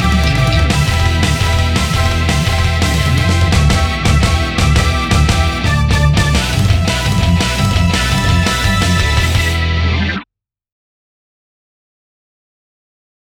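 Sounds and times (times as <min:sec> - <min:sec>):
backing track: 0:00.0 - 0:10.0.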